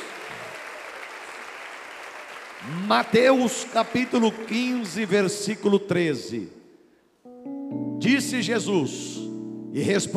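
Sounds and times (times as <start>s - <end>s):
audience applauding: 0.0s - 5.3s
speech: 2.6s - 6.6s, 8.0s - 10.1s.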